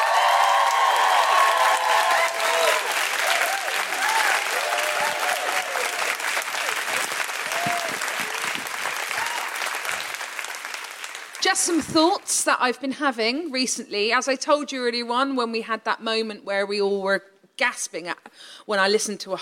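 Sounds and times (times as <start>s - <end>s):
crowd whooping and cheering: 0.0s - 10.1s
crowd applauding: 0.0s - 11.8s
speech: 11.6s - 19.3s.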